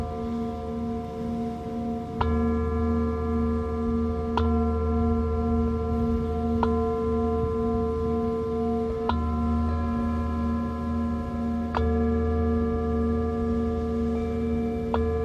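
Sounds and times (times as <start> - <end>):
singing bowl ringing: 0.0 - 15.2.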